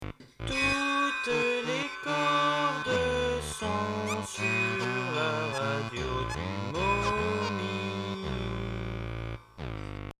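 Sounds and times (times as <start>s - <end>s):
jingle: 0.5s - 9.6s.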